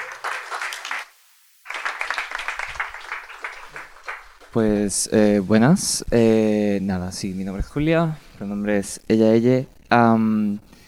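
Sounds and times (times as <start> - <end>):
audience applause: 0.0 - 4.8
speech: 4.5 - 10.8.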